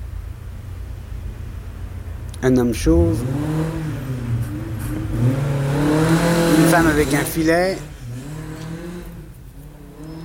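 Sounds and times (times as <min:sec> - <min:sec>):
rally car engine revving past: 0:02.3 - 0:10.2
speech: 0:02.4 - 0:03.8, 0:06.8 - 0:07.9.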